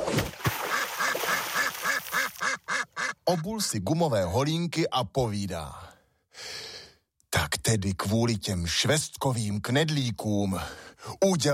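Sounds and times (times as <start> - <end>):
startled ducks quacking: 0.6 - 3.6
speech: 3.3 - 6.5, 7.7 - 11.5.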